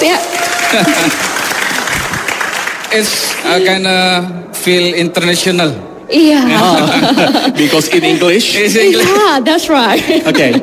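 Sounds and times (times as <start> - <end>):
audience applause at an event in Malang: 0.0 - 3.6
speech: 0.1 - 1.4, 2.9 - 10.6
laughter: 0.6 - 1.3, 6.5 - 8.9, 9.9 - 10.6.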